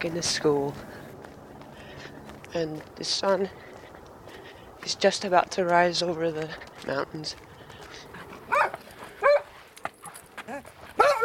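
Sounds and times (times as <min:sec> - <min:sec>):
speech: 0:00.0 - 0:01.0, 0:02.5 - 0:03.6, 0:04.8 - 0:07.5
dog Freckles barking delightedly: 0:08.5 - 0:09.5, 0:11.0 - 0:11.2.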